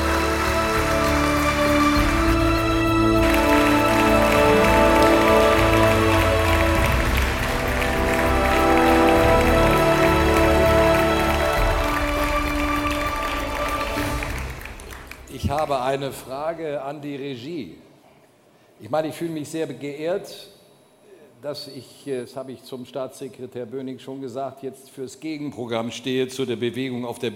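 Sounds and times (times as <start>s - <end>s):
audience applause: 0.0s - 15.9s
music: 0.0s - 16.3s
speech: 15.7s - 17.8s, 18.8s - 20.5s, 21.4s - 27.3s.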